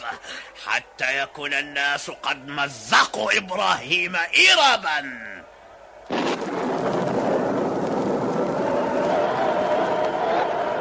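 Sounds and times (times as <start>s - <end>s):
speech: 0.1s - 5.4s
Tower of Babel masonry collapsing onto people in a radio drama: 6.1s - 10.7s.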